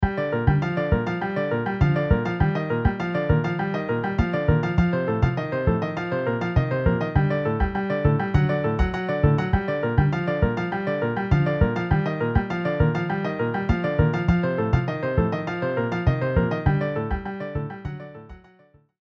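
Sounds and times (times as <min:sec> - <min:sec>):
MIDI piano and bass: 0:00.0 - 0:18.6.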